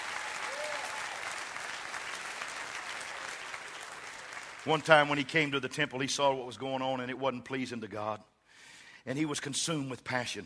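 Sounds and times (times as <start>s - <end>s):
audience clapping: 0.0s - 5.6s
speech: 4.6s - 8.3s, 9.0s - 10.4s.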